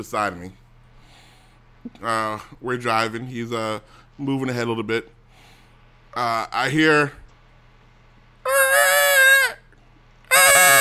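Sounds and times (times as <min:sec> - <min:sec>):
speech: 0:00.0 - 0:00.6, 0:01.8 - 0:05.2, 0:06.1 - 0:07.2
voice imitating car tires screeching: 0:08.5 - 0:09.6, 0:10.3 - 0:10.8.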